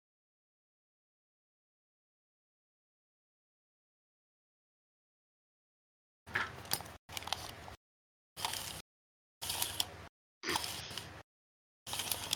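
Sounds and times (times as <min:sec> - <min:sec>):
calipers handled to measure a large die: 0:06.3 - 0:07.8, 0:08.4 - 0:08.8, 0:09.4 - 0:11.2, 0:11.9 - 0:12.3.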